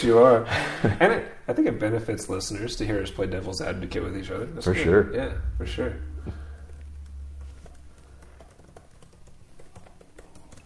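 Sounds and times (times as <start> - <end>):
speech: 0.0 - 6.4
typing on a computer keyboard: 7.6 - 10.6.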